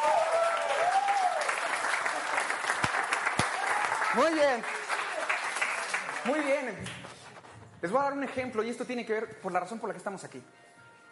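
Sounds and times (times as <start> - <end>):
audience applause at a church sermon: 0.0 - 7.5
sharp individual claps: 0.9 - 7.5
speech: 4.2 - 4.8, 6.2 - 7.1, 7.8 - 10.6.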